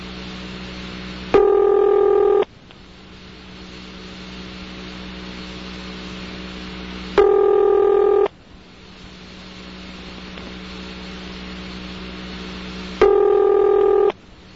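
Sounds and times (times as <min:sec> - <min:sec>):
Bell System telephone ringback tone: 0:01.4 - 0:02.4, 0:07.2 - 0:08.3, 0:13.0 - 0:14.1.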